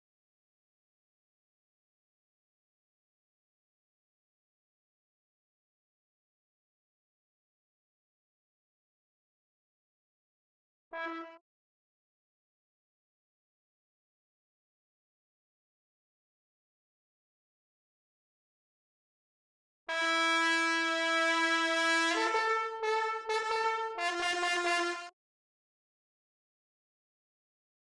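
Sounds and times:
trombone: 0:11.0 - 0:11.4, 0:19.9 - 0:25.1.

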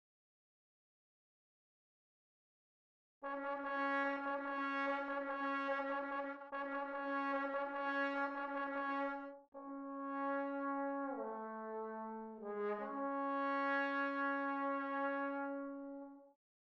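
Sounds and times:
trombone: 0:03.2 - 0:16.3.

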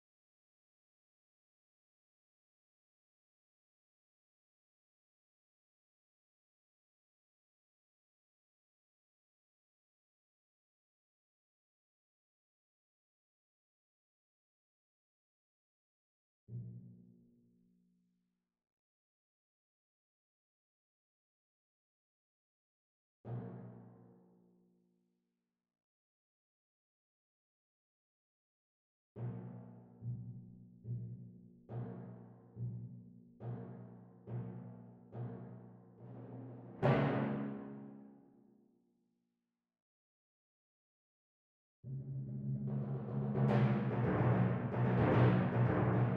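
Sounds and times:
timpani: 0:31.7 - 0:38.1, 0:41.9 - 0:46.1.

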